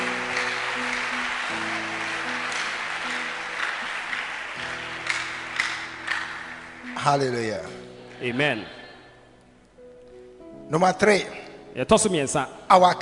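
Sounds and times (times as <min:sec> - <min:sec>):
audience clapping: 0:00.0 - 0:08.4
speech: 0:07.0 - 0:08.8, 0:10.7 - 0:13.0.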